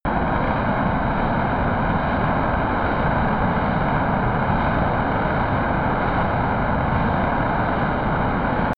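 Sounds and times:
B-1B Lancer military jet turbine steady distant: 0.1 - 8.7.

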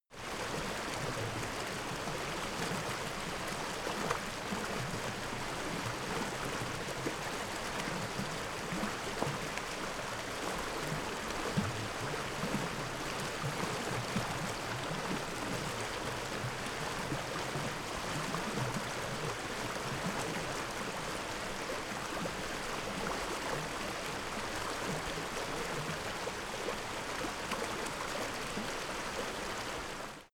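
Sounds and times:
dense stream bubbling: 0.2 - 30.3.

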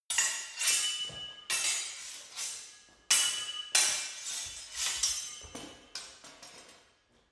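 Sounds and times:
sword hitting sword: 0.1 - 5.4.

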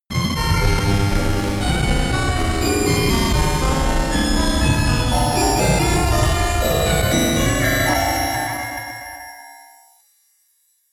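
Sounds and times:
horror orchestra music: 0.8 - 9.3.

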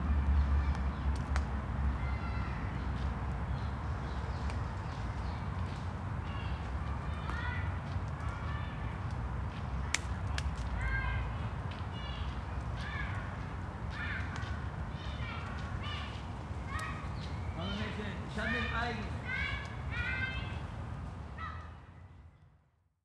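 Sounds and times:
traffic: 0.0 - 22.0
children in a park: 0.4 - 22.1.

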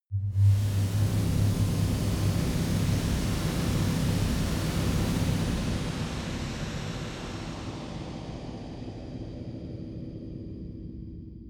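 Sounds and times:
horror atmo drone stinger: 0.1 - 9.0.

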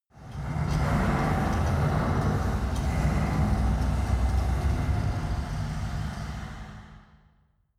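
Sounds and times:
mechanic workshop ambience: 0.1 - 7.0.

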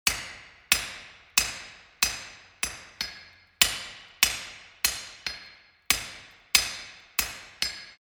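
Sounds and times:
hammering: 0.0 - 7.9.

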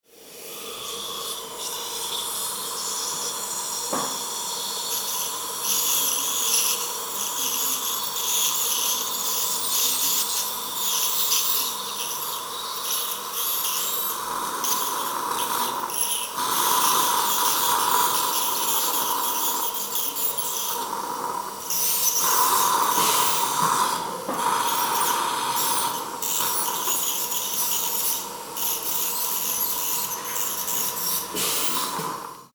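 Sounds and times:
vacuum aspirator: 0.1 - 32.5
drill: 0.3 - 32.5.

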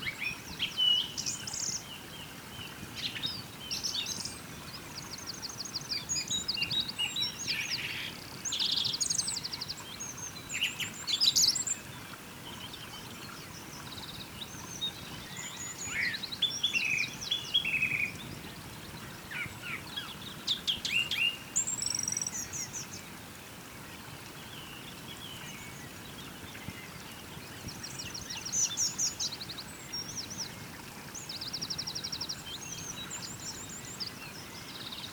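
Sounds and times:
birds singing: 0.0 - 23.0, 24.5 - 35.1
small river flowing: 0.0 - 35.1.

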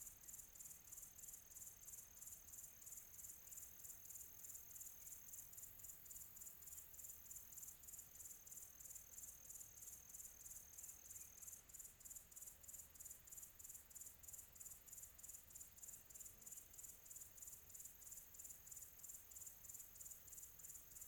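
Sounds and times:
crickets chirping in tropical ambience: 0.0 - 21.0.

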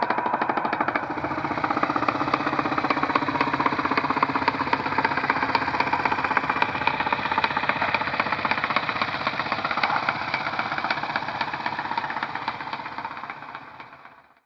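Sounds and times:
harbour ambience: 0.2 - 13.8.

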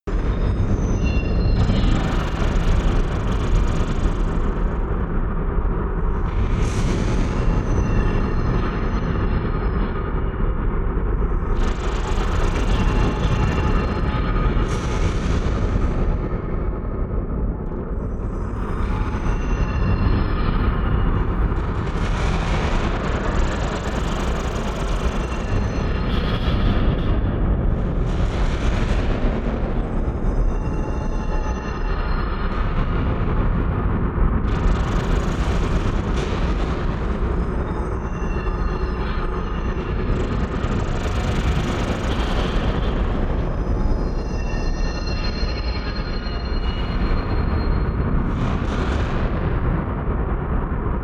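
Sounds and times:
chaotic horror soundscape: 0.1 - 51.0.

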